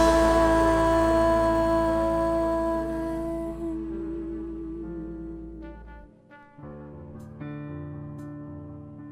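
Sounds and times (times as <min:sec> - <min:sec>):
solo low choir voice with echo: 0:00.0 - 0:06.0.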